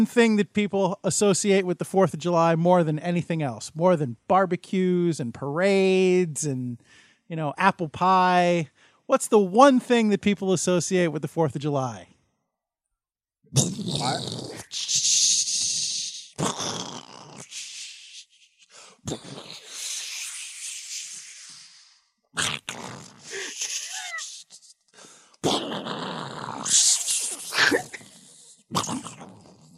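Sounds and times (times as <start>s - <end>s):
speech: 0.0s - 12.1s, 13.5s - 15.2s, 19.1s - 19.6s
person making mouth noises imitating fireworks: 13.5s - 29.7s.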